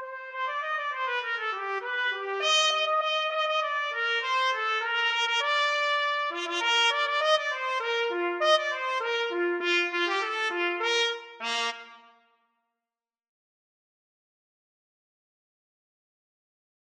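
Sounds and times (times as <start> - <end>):
trumpet duet: 0.0 - 12.2.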